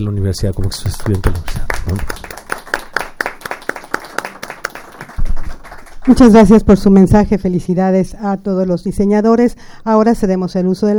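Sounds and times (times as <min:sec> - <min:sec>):
speech: 0:00.0 - 0:02.3, 0:06.1 - 0:10.9
audience applause: 0:00.5 - 0:06.4.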